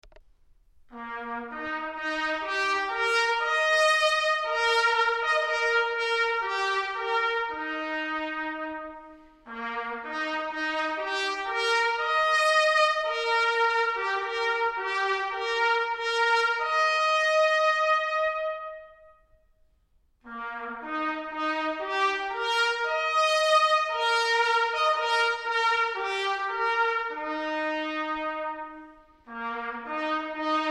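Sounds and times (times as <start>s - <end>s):
trumpet call: 0.9s - 19.2s, 20.2s - 30.6s.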